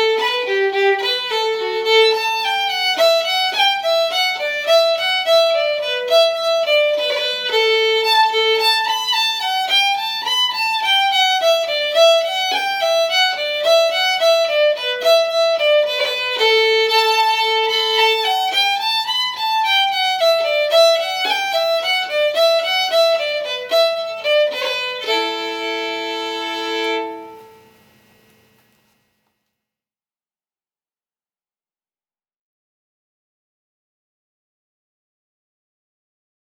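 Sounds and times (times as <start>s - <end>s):
slow fiddle music: 0.0s - 27.9s.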